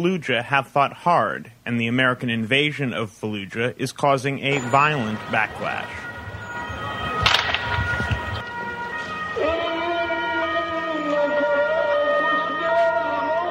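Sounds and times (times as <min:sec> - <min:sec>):
speech: 0:00.0 - 0:06.1
ambulance siren wailing: 0:04.4 - 0:13.4
gunshots: 0:07.2 - 0:08.4.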